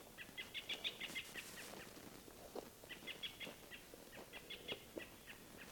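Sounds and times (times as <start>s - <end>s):
American robin alarm calls: 0.2s - 1.9s, 2.9s - 5.6s.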